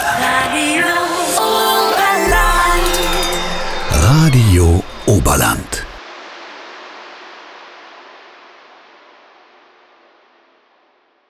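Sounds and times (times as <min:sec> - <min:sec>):
weekend promo stinger voice: 0:00.2 - 0:06.0.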